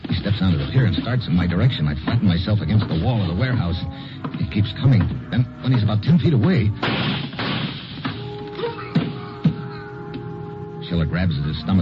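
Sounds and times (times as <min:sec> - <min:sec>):
speech: 0:00.4 - 0:07.2, 0:10.9 - 0:11.7
gunshots: 0:06.8 - 0:08.3.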